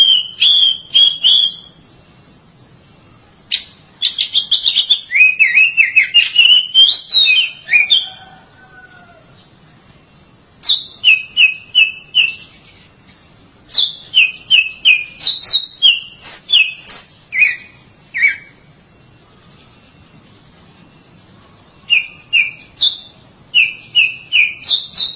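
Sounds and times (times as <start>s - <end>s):
Oriental magpie-robin song: 0.0s - 1.8s, 3.5s - 8.4s, 10.6s - 12.9s, 13.7s - 18.7s, 21.8s - 25.1s.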